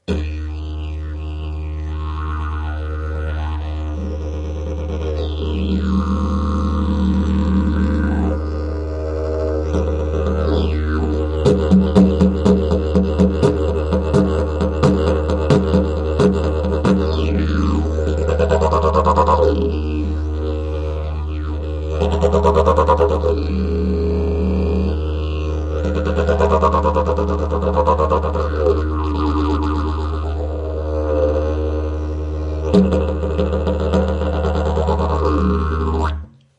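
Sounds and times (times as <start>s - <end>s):
didgeridoo: 0.0s - 36.4s.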